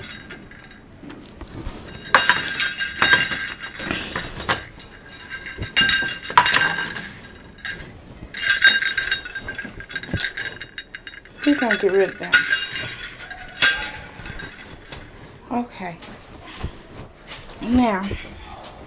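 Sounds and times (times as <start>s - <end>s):
small Christmas bells jingling: 0.0s - 0.9s, 1.7s - 15.3s
speech: 11.6s - 12.5s, 15.5s - 16.1s, 17.6s - 18.3s.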